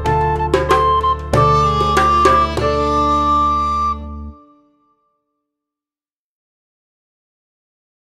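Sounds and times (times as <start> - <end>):
fast recorder playing: 0.0 - 4.5.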